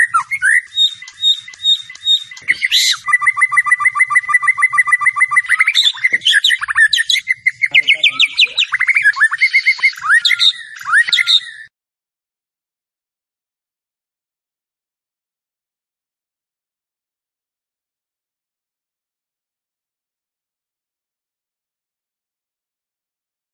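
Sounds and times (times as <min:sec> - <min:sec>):
white-rumped shama song: 0:00.0 - 0:11.7.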